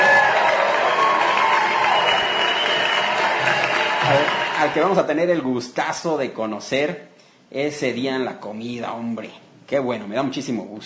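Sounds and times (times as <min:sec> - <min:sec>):
applause: 0:00.0 - 0:05.0
speech: 0:04.6 - 0:10.8.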